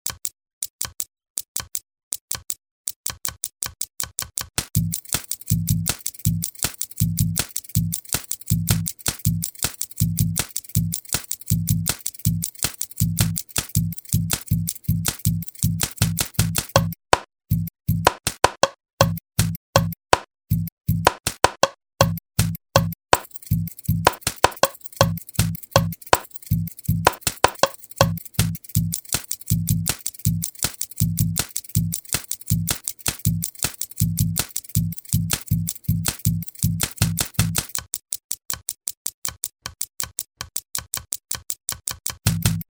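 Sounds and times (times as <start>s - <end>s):
percussion: 0.0s - 42.6s.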